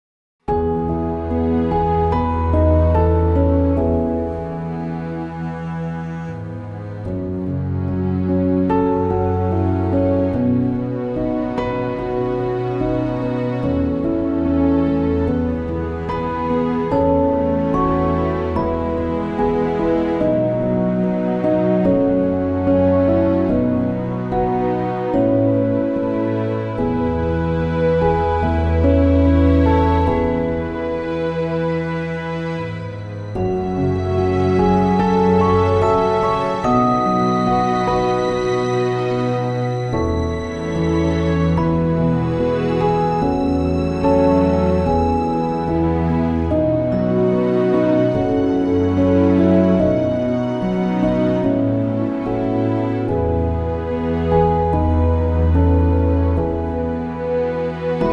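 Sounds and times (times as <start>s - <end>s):
orchestral music: 0.5s - 58.1s.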